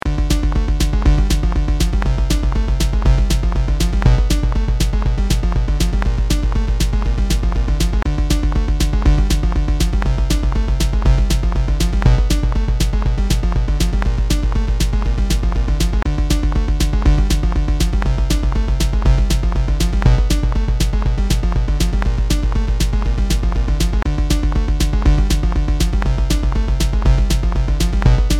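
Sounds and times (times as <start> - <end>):
bongo drums: 0.1 - 28.3.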